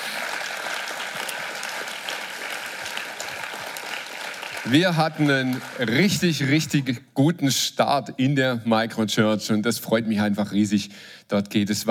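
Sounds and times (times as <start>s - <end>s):
crowd applause: 0.0s - 6.6s
speech: 4.6s - 11.8s.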